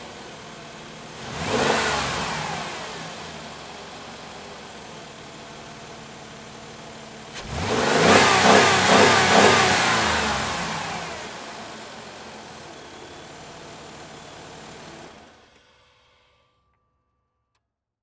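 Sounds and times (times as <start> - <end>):
Jeep Commander engine starting, revving and switching off: 0.0 - 15.4.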